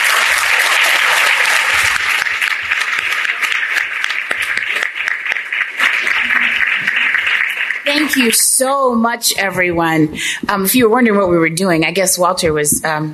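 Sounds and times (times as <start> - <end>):
audience applause for panelists: 0.0 - 9.0
speech: 8.1 - 13.1.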